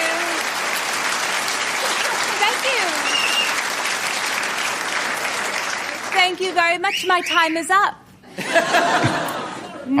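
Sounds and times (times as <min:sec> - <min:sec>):
audience applause: 0:00.0 - 0:06.8
laughter: 0:01.8 - 0:02.9, 0:08.3 - 0:09.9
speech: 0:02.6 - 0:03.2, 0:06.2 - 0:08.0, 0:08.6 - 0:09.1.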